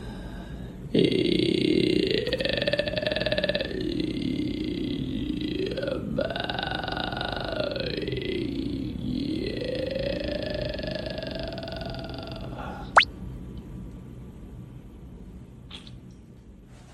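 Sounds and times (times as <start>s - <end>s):
vocal fry creaky voice practice: 0.9s - 13.0s.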